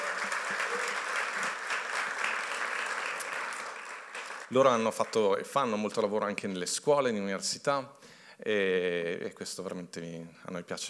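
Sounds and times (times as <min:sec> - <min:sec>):
applause: 0:00.0 - 0:05.5
speech: 0:04.5 - 0:10.8.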